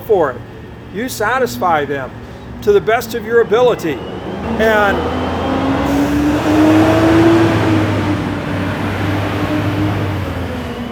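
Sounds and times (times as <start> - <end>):
green garbage truck driving by with engine rumble: 0.0 - 10.8
speech: 0.1 - 5.3.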